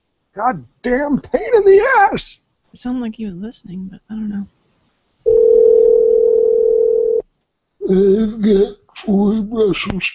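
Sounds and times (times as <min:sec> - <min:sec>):
speech: 0:00.4 - 0:04.6, 0:07.9 - 0:10.1
telephone dial tone: 0:05.3 - 0:07.2.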